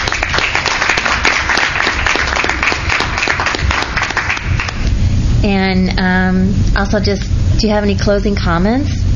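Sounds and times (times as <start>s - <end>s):
room full of people applauding: 0.0s - 4.9s
speech: 5.4s - 9.0s.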